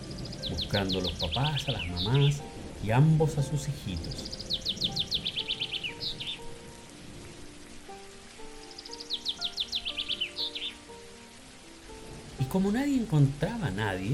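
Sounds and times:
young birds chirping desperately: 0.0s - 7.5s, 8.3s - 11.0s
rain-like patter: 0.0s - 14.1s
speech: 0.7s - 4.4s, 12.5s - 14.1s.

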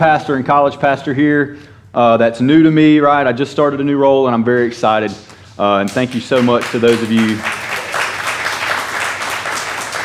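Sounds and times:
speech: 0.0s - 7.6s
audience applause: 6.4s - 10.0s.

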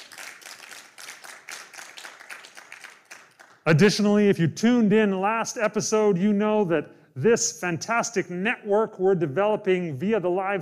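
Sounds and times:
crowd applauding: 0.0s - 3.7s
speech: 3.7s - 10.6s.

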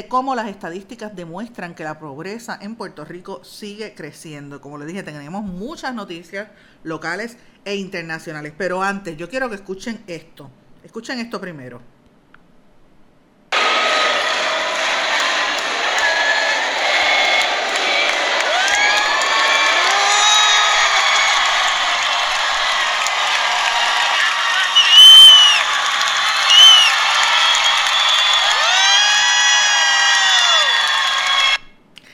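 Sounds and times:
speech: 0.0s - 12.0s
theater audience cheering and whooping: 13.6s - 31.6s
theater audience ovation: 13.6s - 31.6s.

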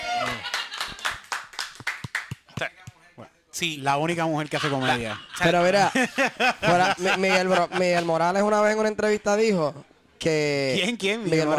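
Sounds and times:
laughter: 0.0s - 1.2s, 4.4s - 8.5s
audience applause: 0.0s - 2.4s
speech: 3.6s - 11.5s.

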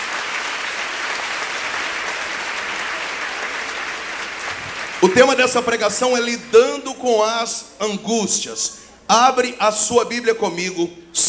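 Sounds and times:
audience applauding: 0.0s - 5.7s
speech: 5.0s - 11.2s.

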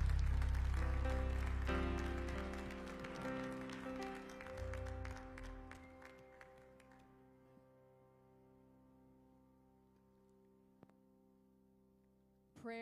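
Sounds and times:
congregation clapping hands in praise during an evening church service: 0.0s - 7.3s.

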